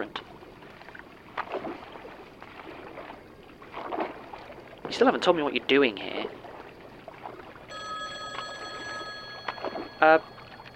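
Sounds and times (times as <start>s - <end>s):
speech: 0.0s - 0.3s, 5.0s - 6.4s, 10.0s - 10.3s
payphone ringing: 7.7s - 10.7s.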